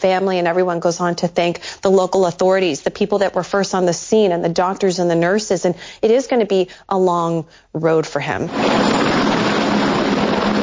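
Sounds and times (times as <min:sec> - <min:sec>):
speech: 0:00.0 - 0:09.2
rescue helicopter flying: 0:08.5 - 0:10.6.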